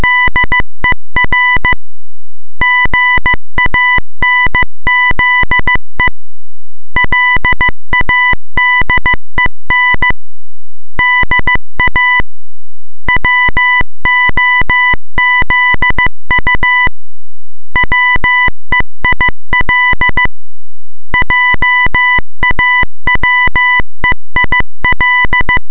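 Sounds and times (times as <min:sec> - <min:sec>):
morse code beeps: 0:00.0 - 0:00.6, 0:01.2 - 0:01.8, 0:02.6 - 0:05.8, 0:07.0 - 0:10.2, 0:11.0 - 0:12.2, 0:13.1 - 0:16.9, 0:17.8 - 0:20.3, 0:21.2 - 0:23.8, 0:24.4 - 0:25.6.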